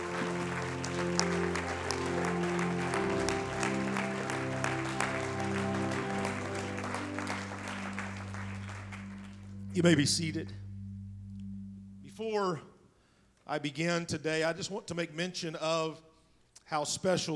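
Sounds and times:
audience applause: 0:00.0 - 0:10.5
speech: 0:09.8 - 0:10.6, 0:13.5 - 0:16.1, 0:16.7 - 0:17.3.

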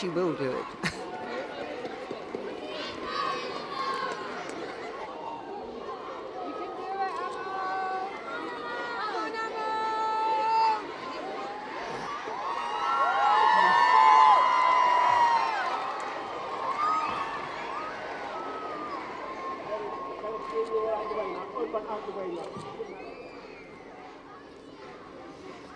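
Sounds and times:
large crowd murmuring: 0:00.0 - 0:12.8, 0:13.4 - 0:25.7.

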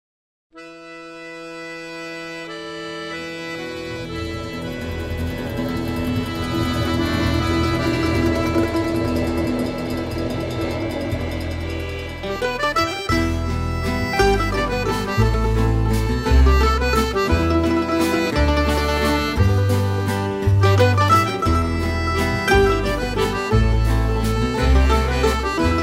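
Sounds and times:
Chinese waltz music: 0:00.6 - 0:25.8.

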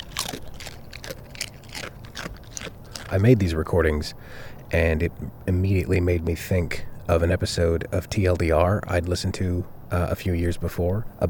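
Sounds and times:
dog crunching a tortilla chip from Chipotle: 0:00.0 - 0:04.9
speech: 0:03.1 - 0:11.2.

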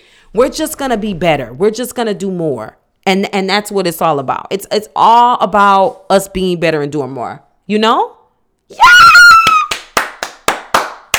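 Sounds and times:
speech: 0:00.3 - 0:09.2
sharp hand claps: 0:09.3 - 0:11.1.

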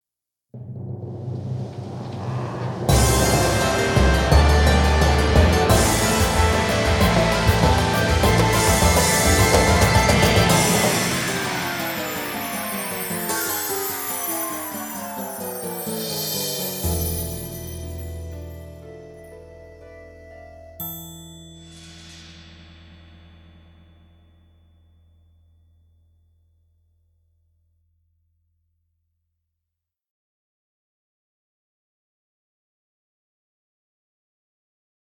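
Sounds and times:
instrumental music: 0:00.6 - 0:23.9.

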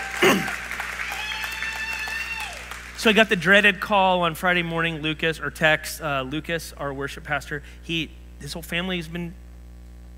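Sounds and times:
audience applauding: 0:00.0 - 0:03.7
speech: 0:03.0 - 0:09.4.

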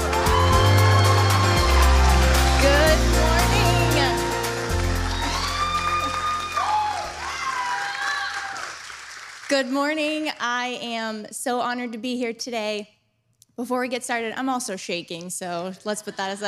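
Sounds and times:
keyboard music with deep bass notes: 0:00.0 - 0:06.9
audience clapping and cheering: 0:00.0 - 0:10.4
speech: 0:09.5 - 0:13.0, 0:13.6 - 0:16.4.

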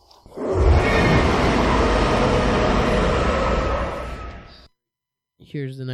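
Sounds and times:
Godzilla movie monster scream: 0:00.3 - 0:04.7.

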